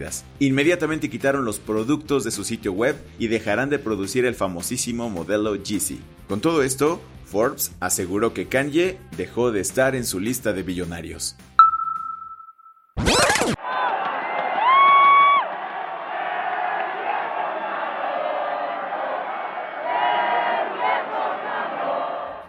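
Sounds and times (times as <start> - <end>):
speech: 0.0 - 11.5
huge street crowd shouting and cheering: 13.2 - 22.4.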